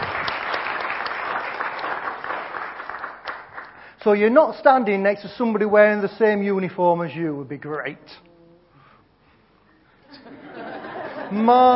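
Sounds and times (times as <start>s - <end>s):
audience applause: 0.0s - 3.8s
speech: 4.0s - 8.2s, 11.3s - 11.7s
laughter: 10.0s - 11.7s.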